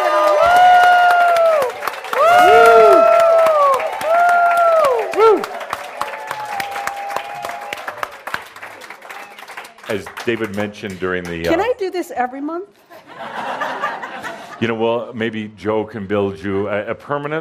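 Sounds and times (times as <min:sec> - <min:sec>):
audience cheering: 0:00.0 - 0:10.0
audience applause: 0:00.0 - 0:11.7
speech: 0:10.0 - 0:12.9, 0:14.6 - 0:17.4
laughter: 0:12.9 - 0:14.9.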